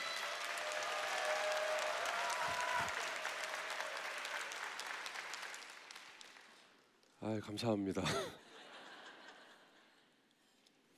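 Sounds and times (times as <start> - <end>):
audience applauding to welcome pastor: 0.0 - 6.6
speech: 7.2 - 8.4.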